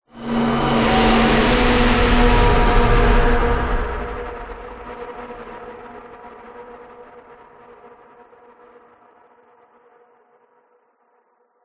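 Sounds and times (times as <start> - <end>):
whoosh: 0.1 - 5.4.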